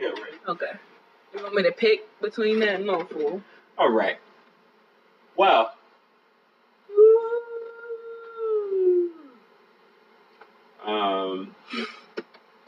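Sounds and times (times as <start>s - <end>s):
speech: 0.5s - 4.3s, 5.4s - 5.8s, 10.9s - 12.0s
person yawning: 6.9s - 9.4s, 11.7s - 12.1s.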